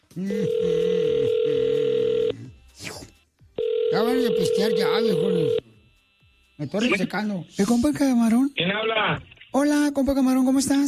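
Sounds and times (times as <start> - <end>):
speech: 0.2 - 0.9, 4.2 - 5.6, 6.6 - 10.8
loud steady telephone tone: 0.3 - 2.3, 3.6 - 5.6.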